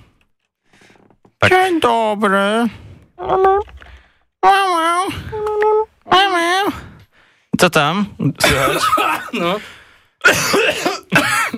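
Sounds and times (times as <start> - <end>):
speech: 1.4 - 3.7, 4.4 - 5.7, 7.6 - 11.5
harsh coughing: 8.4 - 11.5.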